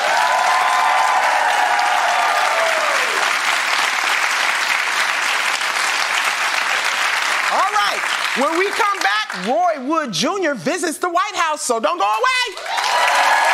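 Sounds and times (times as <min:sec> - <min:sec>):
audience applause and cheering: 0:00.0 - 0:09.6, 0:12.5 - 0:13.5
speech: 0:08.4 - 0:12.8.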